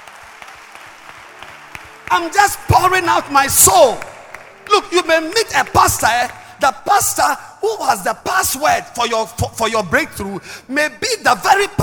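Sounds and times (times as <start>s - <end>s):
audience clapping hands: 0.0s - 6.7s
speech: 2.1s - 4.1s, 4.7s - 11.8s.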